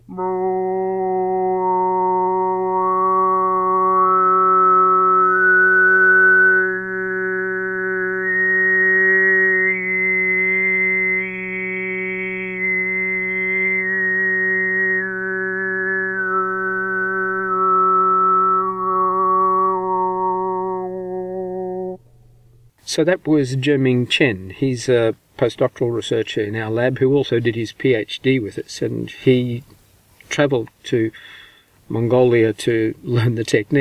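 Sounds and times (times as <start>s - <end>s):
low sung drone in Mongolian overtone singing: 0.0s - 22.7s
speech: 0.1s - 0.5s, 23.0s - 29.7s, 30.3s - 33.7s
whistling overtone in Mongolian overtone singing: 0.1s - 22.3s.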